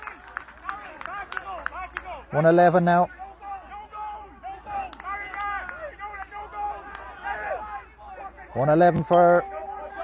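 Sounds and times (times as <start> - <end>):
crowd clapping: 0.0 - 2.8, 4.7 - 7.3
murmur of voices and shouts: 0.6 - 10.0
speech: 2.3 - 3.2, 8.6 - 9.5.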